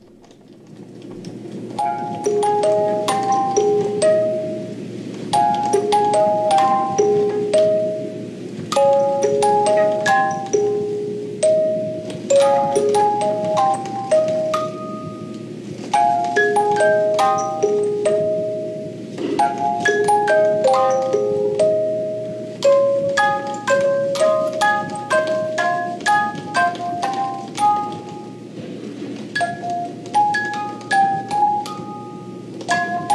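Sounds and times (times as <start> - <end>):
music box playing a twisted Möbius paper strip: 1.7 - 28.5, 29.4 - 33.1.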